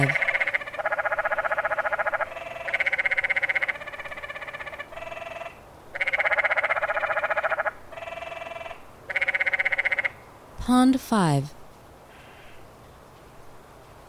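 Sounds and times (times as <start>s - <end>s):
canyon tree frogs trilling: 0.0s - 10.4s, 12.1s - 12.7s
speech: 10.7s - 11.6s.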